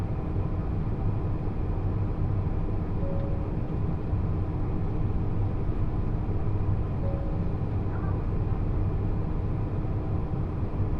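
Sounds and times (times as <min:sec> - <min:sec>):
limited express Uzushio No. 24 train rumble on the Kotoku Line: 0:00.0 - 0:10.9.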